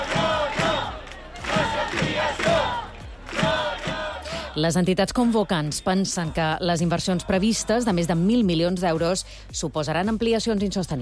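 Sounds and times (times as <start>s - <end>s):
protest crowd chanting: 0.0s - 8.4s
speech: 4.6s - 11.0s.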